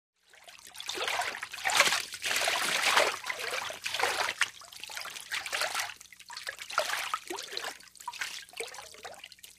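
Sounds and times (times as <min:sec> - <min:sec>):
water splash: 0:00.8 - 0:06.0, 0:06.7 - 0:09.1.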